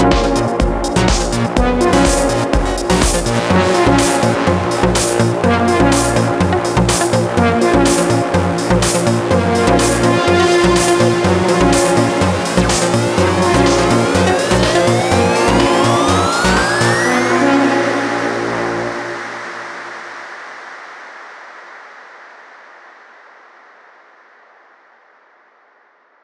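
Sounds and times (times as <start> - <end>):
tech house club music: 0.0 - 19.9.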